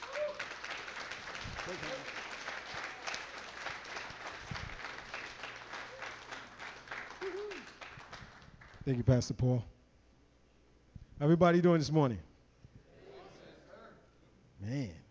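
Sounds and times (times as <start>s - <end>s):
cheers and whoops: 0.0s - 0.6s, 7.2s - 7.8s
audience clapping: 0.0s - 9.0s
speech: 1.7s - 2.2s, 8.8s - 9.8s, 11.2s - 12.3s, 14.7s - 15.0s.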